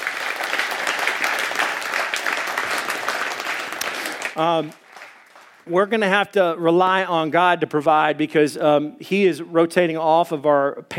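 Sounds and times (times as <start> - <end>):
crowd clapping welcoming a pastor to the stage: 0.0 - 5.7
speech: 4.4 - 4.8, 5.6 - 10.9.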